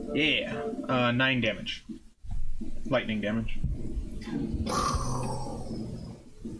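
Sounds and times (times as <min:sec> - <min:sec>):
speech: 0:00.2 - 0:01.9, 0:02.9 - 0:05.2
vampire growling sound effect: 0:04.2 - 0:06.2.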